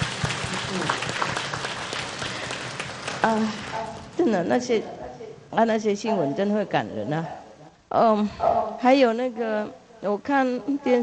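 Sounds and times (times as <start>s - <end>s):
crowd applauding: 0.0s - 4.2s
speech: 3.2s - 3.6s, 4.2s - 11.0s.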